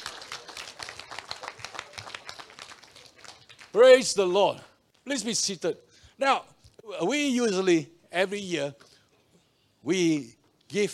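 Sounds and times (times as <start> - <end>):
audience cheering and clapping: 0.0 - 3.8
speech: 3.8 - 8.8, 9.8 - 10.9.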